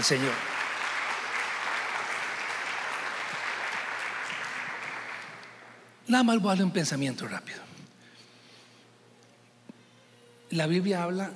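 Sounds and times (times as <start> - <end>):
speech: 0.0 - 0.5, 6.1 - 7.7, 10.5 - 11.3
audience applauding: 0.0 - 5.9.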